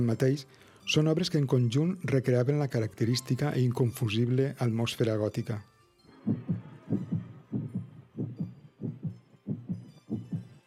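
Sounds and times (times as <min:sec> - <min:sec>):
speech: 0:00.0 - 0:06.4
human heartbeat: 0:06.3 - 0:10.6.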